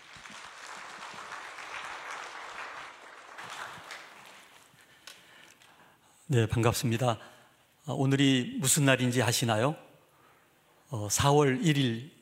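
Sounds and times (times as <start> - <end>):
welcoming applause: 0.0 - 5.2
speech: 6.3 - 7.3, 7.9 - 9.8, 10.9 - 12.2.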